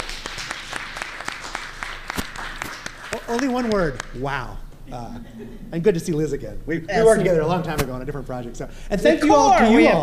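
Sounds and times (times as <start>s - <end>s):
audience applause: 0.0s - 4.0s
speech: 3.3s - 10.0s.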